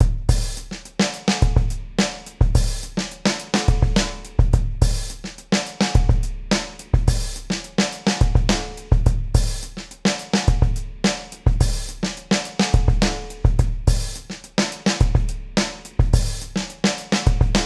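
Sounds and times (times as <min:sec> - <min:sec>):
drummers playing: 0:00.0 - 0:17.6.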